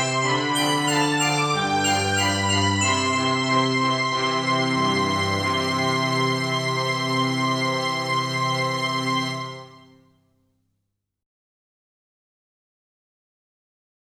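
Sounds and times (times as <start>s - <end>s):
school music: 0.0s - 9.9s.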